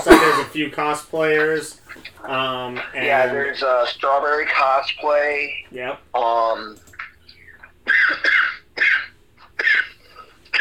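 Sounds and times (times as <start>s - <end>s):
person coughing from choking on spit: 0.0s - 0.6s, 7.8s - 10.5s
speech: 0.4s - 6.9s.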